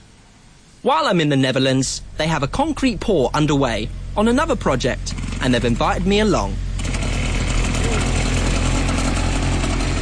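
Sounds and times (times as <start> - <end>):
speech: 0.8 - 6.7
pull-start motor starting: 5.0 - 5.8, 6.7 - 10.0.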